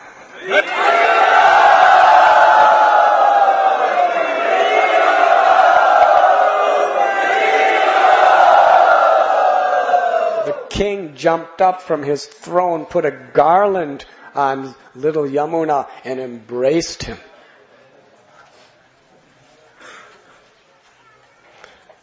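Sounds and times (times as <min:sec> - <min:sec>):
speech: 0:00.4 - 0:01.1, 0:10.8 - 0:17.3
great roar of audience applause: 0:00.5 - 0:10.7.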